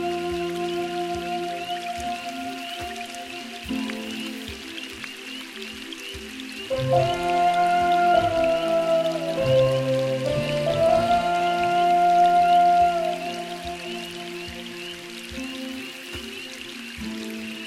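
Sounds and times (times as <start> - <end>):
delicate rain: 0.0 - 17.6.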